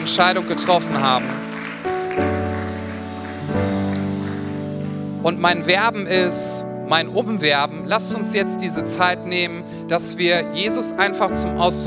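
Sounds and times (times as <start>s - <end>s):
audience applause: 0.0s - 5.2s
speech: 0.1s - 1.5s, 5.2s - 11.8s.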